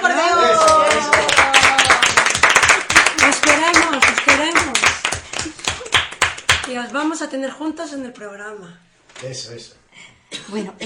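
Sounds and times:
applause: 0:00.4 - 0:06.8
speech: 0:06.9 - 0:10.8.

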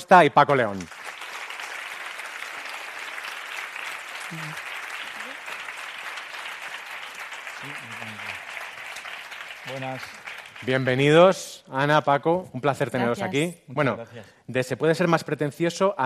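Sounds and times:
speech: 0:00.0 - 0:01.0, 0:04.3 - 0:04.6, 0:09.7 - 0:16.0
audience applause: 0:00.5 - 0:11.3.

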